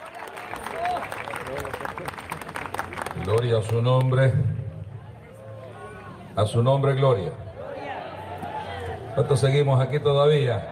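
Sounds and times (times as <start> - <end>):
audience applause: 0.0 - 3.8
speech: 3.3 - 4.6, 6.4 - 7.4, 9.2 - 10.7.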